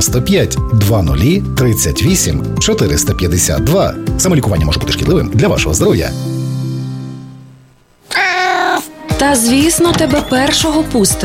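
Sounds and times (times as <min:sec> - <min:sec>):
speech: 0:00.0 - 0:06.3, 0:09.2 - 0:11.2
cat meowing: 0:08.0 - 0:08.9.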